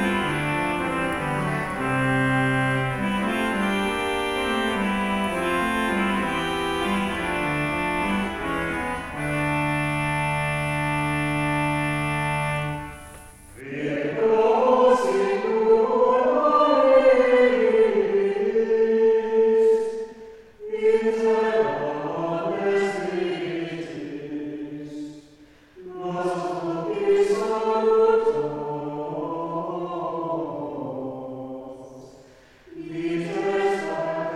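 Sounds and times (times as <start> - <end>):
organ: 0.0 - 13.6
chant: 0.0 - 34.3.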